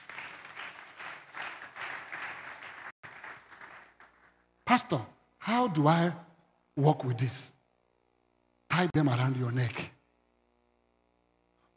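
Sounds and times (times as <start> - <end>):
crowd applauding: 0.0 - 4.4
speech: 4.7 - 7.6, 8.7 - 9.9.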